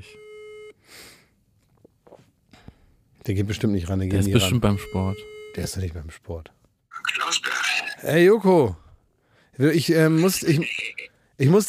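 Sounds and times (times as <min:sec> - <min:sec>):
phone call ringing tone electronic beep: 0:00.0 - 0:00.8, 0:04.2 - 0:05.7
speech: 0:03.2 - 0:06.6, 0:08.0 - 0:08.8, 0:09.6 - 0:11.6.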